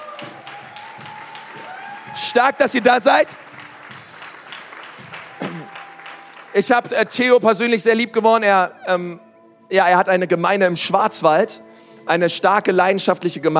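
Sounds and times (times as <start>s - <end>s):
audience applause: 0.0s - 7.4s
speech: 2.2s - 3.5s, 6.6s - 13.5s.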